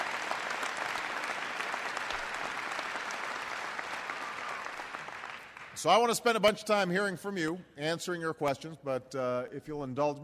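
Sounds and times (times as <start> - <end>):
audience applause: 0.0 - 5.8
speech: 5.8 - 10.2.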